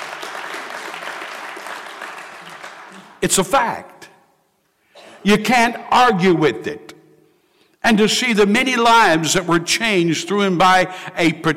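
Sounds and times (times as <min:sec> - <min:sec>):
audience clapping: 0:00.0 - 0:03.4
speech: 0:03.2 - 0:03.9, 0:05.2 - 0:06.9, 0:07.8 - 0:11.5.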